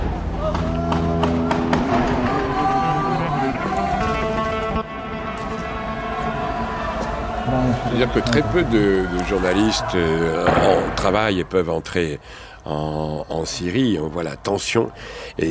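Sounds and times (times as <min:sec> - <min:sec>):
crowd running away: 0:00.0 - 0:11.7
speech: 0:08.0 - 0:15.4.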